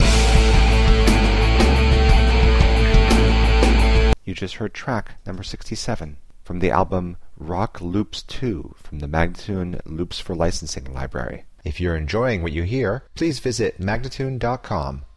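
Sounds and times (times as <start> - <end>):
rock loop: 0.0 - 4.2
person speaking: 4.2 - 15.1.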